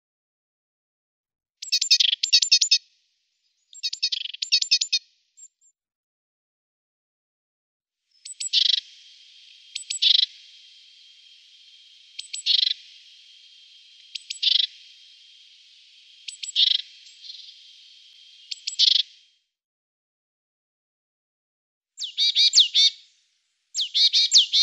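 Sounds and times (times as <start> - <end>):
Eurasian blue tit calls: 1.6 - 2.8, 3.8 - 5.0, 8.2 - 19.2, 22.0 - 23.0, 23.7 - 24.6.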